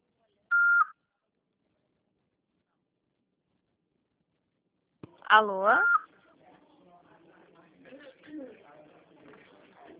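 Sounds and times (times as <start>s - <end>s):
voicemail recording beep: 0.5s - 1.0s
speech: 5.3s - 6.0s.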